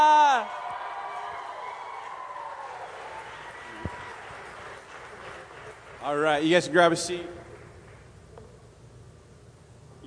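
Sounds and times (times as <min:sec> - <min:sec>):
audience applause and cheering welcoming a speaker to the stage: 0:00.0 - 0:06.3
speech: 0:06.0 - 0:07.4.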